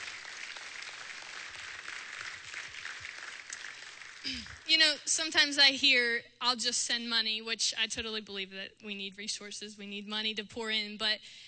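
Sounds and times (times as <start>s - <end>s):
audience applause: 0.0s - 4.7s
speech: 4.2s - 11.4s.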